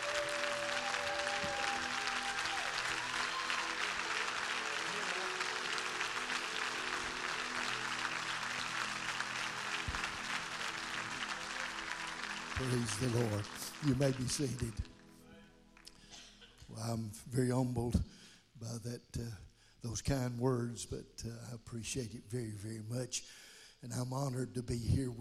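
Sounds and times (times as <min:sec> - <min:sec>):
congregation applauding to welcome a speaker: 0:00.0 - 0:16.6
speech: 0:12.6 - 0:14.9, 0:16.9 - 0:25.1.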